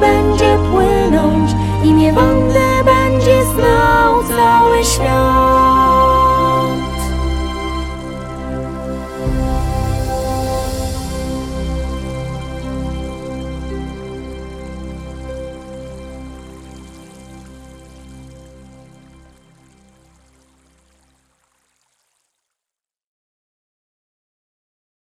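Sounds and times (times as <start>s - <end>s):
vocal version of a song: 0.0s - 14.4s.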